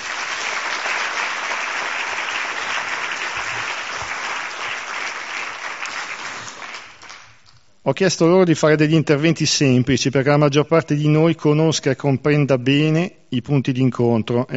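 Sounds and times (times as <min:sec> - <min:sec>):
audience applause: 0:00.0 - 0:07.4
speech: 0:07.9 - 0:14.5.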